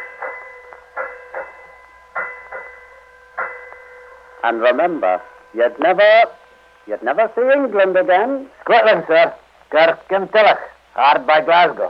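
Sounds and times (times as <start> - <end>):
ship's bell striking seven bells: 0.0 - 8.9
speech: 4.4 - 11.8.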